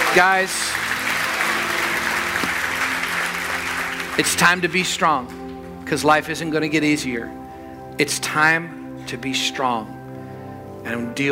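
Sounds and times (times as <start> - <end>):
congregation hand clapping at a morning church service: 0.0 - 5.7
speech: 0.2 - 0.9, 4.2 - 7.4, 8.0 - 10.0, 10.8 - 11.2.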